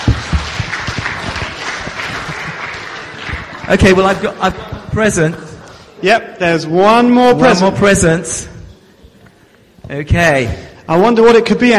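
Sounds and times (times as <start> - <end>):
audience applause: 0.0 - 4.8
laughter: 0.8 - 6.0
speech: 3.7 - 8.5, 9.9 - 11.7.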